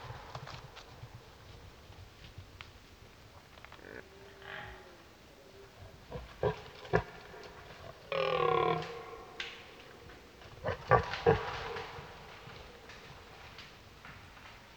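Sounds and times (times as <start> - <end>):
red deer roaring: 5.7 - 13.0.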